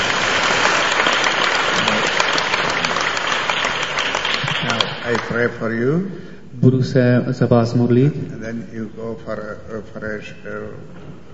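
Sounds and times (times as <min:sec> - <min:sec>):
church congregation applauding for Jesus during a service: 0:00.0 - 0:05.6
speech: 0:05.1 - 0:11.3.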